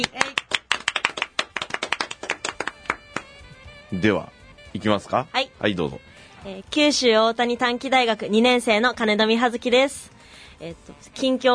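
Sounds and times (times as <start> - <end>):
speech: 0.0 - 0.2, 3.9 - 11.5
applause: 0.0 - 3.4.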